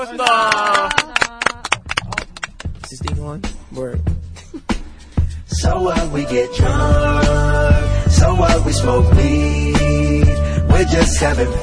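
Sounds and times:
speech: 0:00.0 - 0:01.0, 0:02.9 - 0:04.8, 0:05.6 - 0:11.6
applause, people clapping together: 0:00.0 - 0:03.4.

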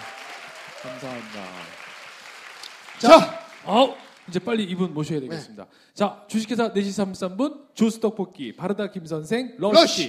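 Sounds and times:
crowd applause: 0:00.0 - 0:05.0
speech: 0:00.8 - 0:01.8, 0:03.0 - 0:10.0.

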